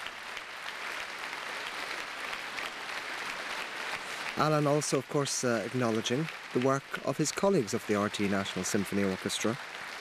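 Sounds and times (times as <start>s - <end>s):
concert audience applause: 0.0s - 9.9s
speech: 4.4s - 9.8s.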